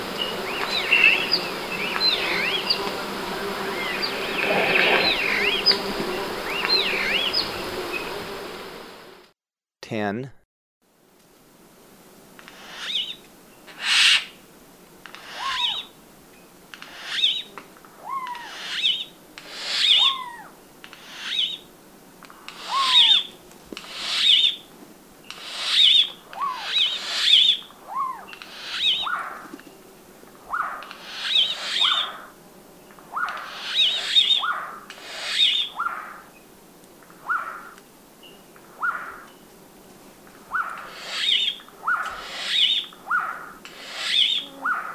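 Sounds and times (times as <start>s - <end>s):
turquoise jay harsh rasping calls: 0.2s - 7.5s, 12.5s - 14.4s, 15.1s - 15.9s, 16.8s - 21.7s, 22.4s - 24.6s, 25.3s - 29.5s, 30.5s - 32.3s, 33.1s - 36.3s, 37.2s - 37.7s, 38.8s - 39.3s, 40.5s - 44.9s
speech: 10.0s - 10.4s.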